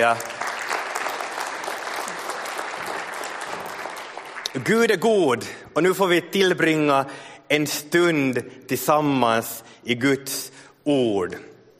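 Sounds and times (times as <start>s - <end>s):
speech: 0.0s - 0.3s, 4.5s - 11.5s
audience applause: 0.0s - 4.7s.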